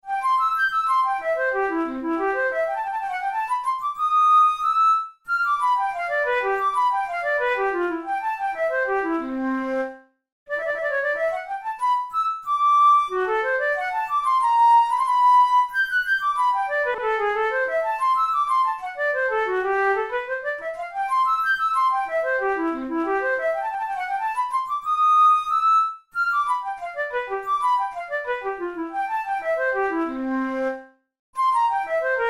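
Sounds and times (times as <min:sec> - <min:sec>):
studies for the Boehm flute: 0:00.0 - 0:32.2.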